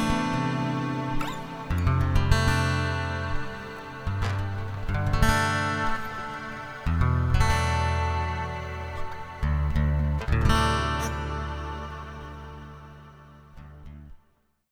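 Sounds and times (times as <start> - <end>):
Washburn acoustic guitars: 0.0 - 14.3.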